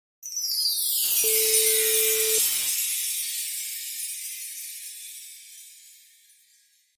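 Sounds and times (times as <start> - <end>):
sparkling sound effect: 0.2 - 6.9.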